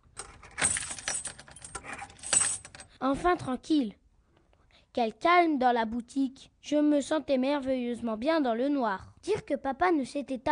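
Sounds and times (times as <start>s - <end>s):
key turning in a shop door lock: 0.0s - 2.9s
speech: 3.0s - 4.0s, 5.0s - 10.5s.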